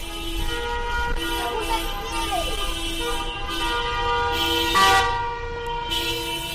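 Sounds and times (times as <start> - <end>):
car horns honking at protest: 0.0 - 6.5
traffic noise: 0.0 - 6.5.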